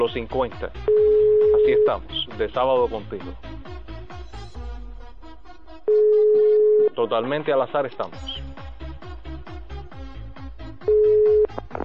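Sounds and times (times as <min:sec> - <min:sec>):
speech: 0:00.0 - 0:03.5, 0:07.0 - 0:08.3
soft rhythmic repeating background: 0:00.0 - 0:04.6, 0:05.8 - 0:11.8
telephone line beep while dialing: 0:00.9 - 0:02.0, 0:05.9 - 0:07.0, 0:10.9 - 0:11.6.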